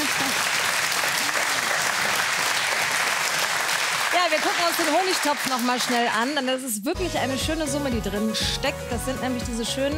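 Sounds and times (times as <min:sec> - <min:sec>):
studio audience applause: 0:00.0 - 0:06.6
speech: 0:04.3 - 0:09.9.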